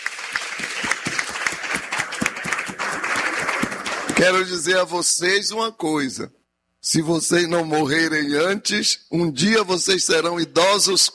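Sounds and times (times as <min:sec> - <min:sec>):
audience clapping hands: 0:00.0 - 0:04.7
speech: 0:04.2 - 0:11.1.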